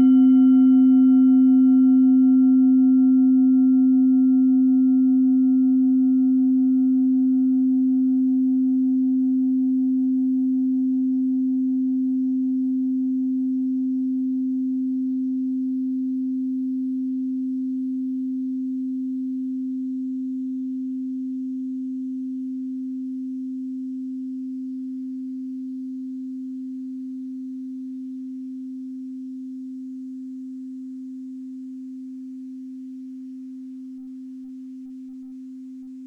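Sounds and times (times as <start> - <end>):
singing bowl from Ladakh: 0.0 - 36.0.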